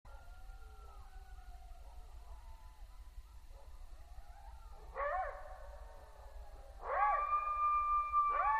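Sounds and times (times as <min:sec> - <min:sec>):
coyote howling at night: 0:00.1 - 0:08.5.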